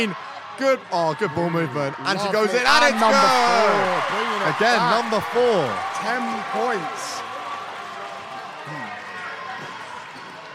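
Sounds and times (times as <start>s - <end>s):
speech: 0.0s - 7.3s
crowd cheering at a basketball game: 0.0s - 10.5s
person shouting: 2.7s - 4.0s.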